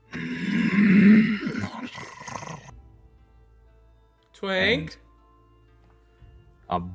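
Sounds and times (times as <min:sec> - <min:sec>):
person imitating a big cat's growl: 0:00.0 - 0:02.7
speech: 0:04.4 - 0:05.0, 0:06.7 - 0:06.9.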